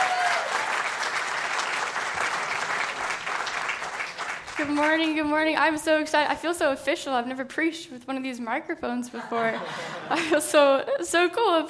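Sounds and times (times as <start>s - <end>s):
church congregation applause welcoming a young woman up to preach: 0.0s - 5.2s
speech: 4.6s - 11.6s
laughter: 9.2s - 10.8s.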